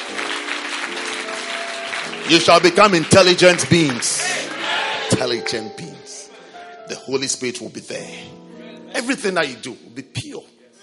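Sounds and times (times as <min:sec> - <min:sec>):
crowd clapping: 0:00.0 - 0:05.3
speech: 0:02.3 - 0:04.4, 0:05.1 - 0:05.9, 0:06.9 - 0:10.5.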